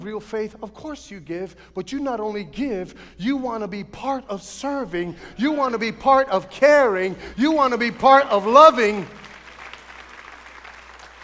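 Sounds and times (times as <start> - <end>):
speech: 0.0 - 9.2
golf clap: 9.1 - 11.2.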